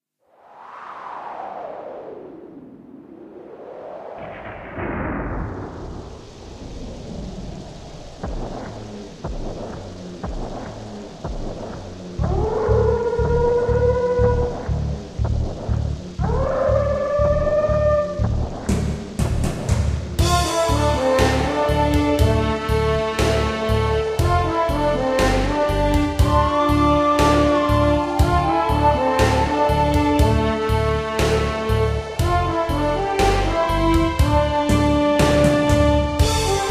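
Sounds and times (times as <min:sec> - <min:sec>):
backing music: 0:08.2 - 0:36.6.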